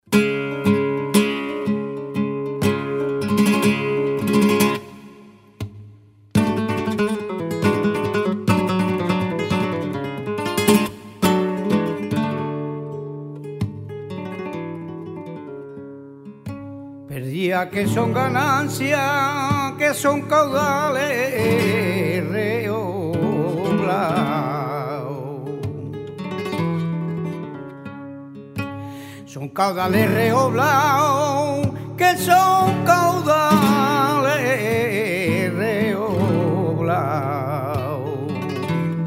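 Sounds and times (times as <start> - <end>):
solea flamenco music: 0.0 - 39.0.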